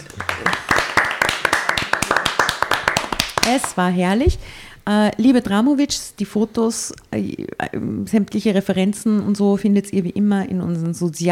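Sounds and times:
applause: 0.0 - 3.8
speech: 0.4 - 0.6, 3.5 - 11.3.

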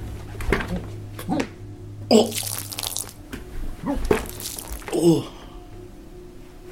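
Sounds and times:
speech: 2.1 - 2.6, 5.0 - 5.4
person vomiting onto desk and floor: 2.1 - 3.2, 3.9 - 5.5
wet splatter of vomit liquid: 2.1 - 3.2, 4.1 - 5.0.

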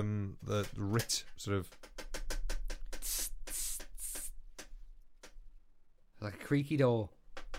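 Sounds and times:
speech: 0.0 - 1.9, 6.2 - 7.2
spray bottle spraying: 2.9 - 4.4.

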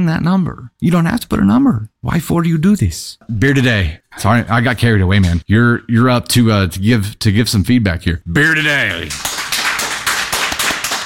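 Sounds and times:
speech: 0.0 - 9.3
one person clapping: 8.9 - 11.0.

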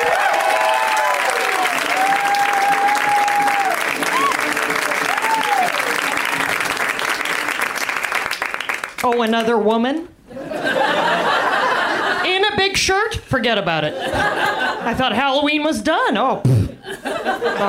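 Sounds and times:
comedy club audience applauding: 0.0 - 9.3
speech: 9.2 - 10.1, 12.8 - 16.6, 17.2 - 17.6
laughter: 10.3 - 12.3, 13.9 - 15.0, 16.7 - 17.6.

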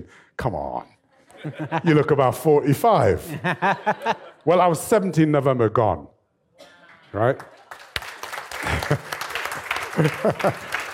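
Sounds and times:
speech: 0.0 - 6.1, 7.1 - 7.6, 10.0 - 10.7
laughter: 1.3 - 4.7, 8.5 - 10.9
audience clapping: 7.2 - 10.9.

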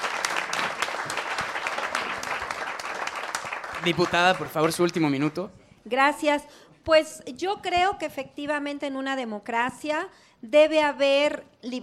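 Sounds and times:
audience applause: 0.0 - 5.4
speech: 3.8 - 11.8.

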